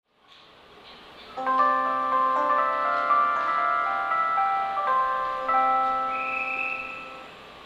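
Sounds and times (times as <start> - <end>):
melody: 1.4 - 7.5.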